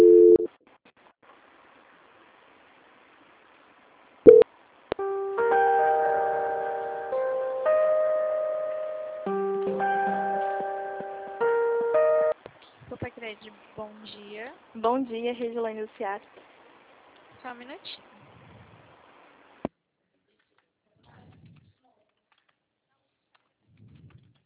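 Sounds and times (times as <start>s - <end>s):
looping electronic hold melody during a call transfer: 5.0s - 12.4s
speech: 15.0s - 16.5s, 17.4s - 18.1s.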